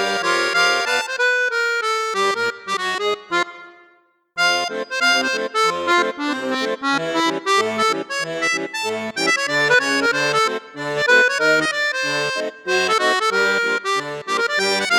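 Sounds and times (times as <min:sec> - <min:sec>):
accordion playing on the flute register: 0:00.0 - 0:14.9.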